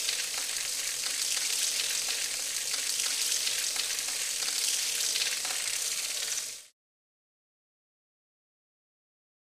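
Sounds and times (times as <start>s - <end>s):
distant water dripping: 0.0s - 6.5s.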